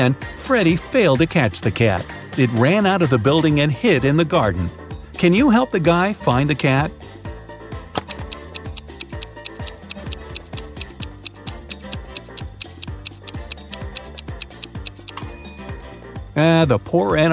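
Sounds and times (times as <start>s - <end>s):
speech: 0.0s - 7.1s, 16.4s - 17.3s
clock timer ticking: 8.0s - 15.2s.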